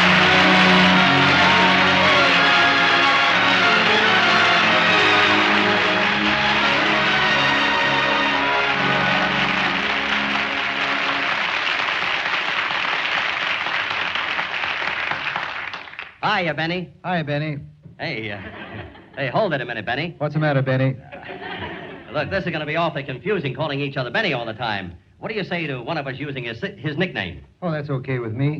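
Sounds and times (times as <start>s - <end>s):
band playing brassy music: 0.0s - 11.8s
studio audience applause welcoming a guest: 0.0s - 16.2s
speech: 16.4s - 28.5s
laughter: 18.2s - 19.5s, 21.0s - 23.2s.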